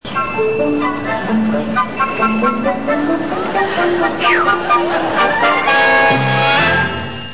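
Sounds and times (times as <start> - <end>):
music: 0.0 - 7.3
laughter: 2.0 - 6.2.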